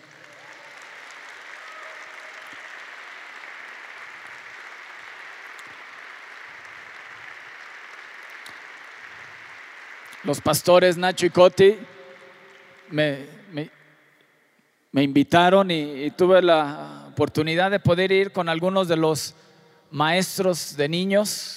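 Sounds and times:
crowd applause: 0.0s - 13.5s
speech: 10.2s - 12.0s, 12.9s - 13.8s, 14.9s - 21.5s.

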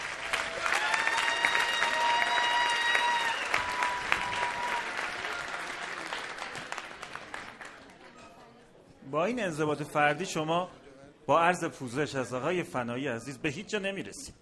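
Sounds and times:
crowd clapping: 0.0s - 8.2s
speech: 9.1s - 14.3s.

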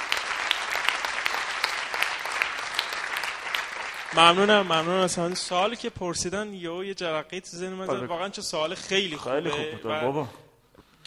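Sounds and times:
audience applause during a coaching session: 0.0s - 5.5s
speech: 4.1s - 10.4s.

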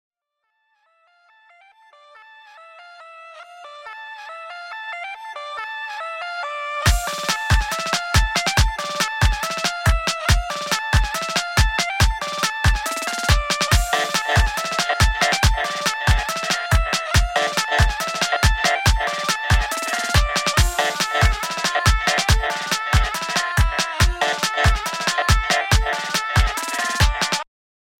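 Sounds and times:
rap beat: 6.9s - 27.4s.

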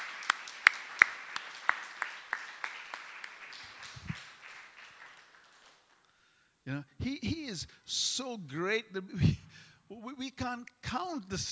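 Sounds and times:
audience applauding: 0.0s - 6.1s
speech: 6.7s - 11.5s.

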